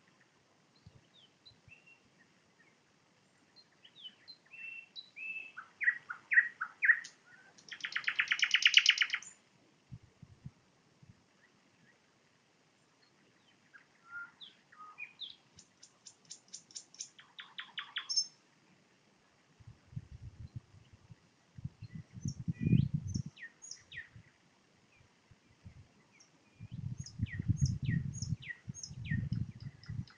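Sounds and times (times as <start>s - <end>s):
nightingale singing: 0.0s - 2.8s, 3.5s - 9.4s, 13.0s - 18.4s, 20.4s - 30.1s.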